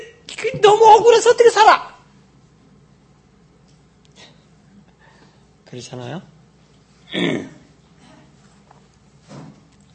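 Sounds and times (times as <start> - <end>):
speech: 0.4 - 1.9, 5.7 - 6.3, 7.1 - 7.6
person coughing: 7.1 - 8.3.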